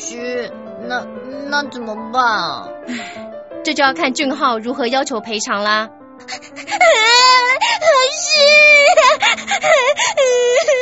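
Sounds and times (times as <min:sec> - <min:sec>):
speech: 0:00.1 - 0:07.1, 0:07.8 - 0:10.8
girl crying sadly: 0:06.2 - 0:10.8.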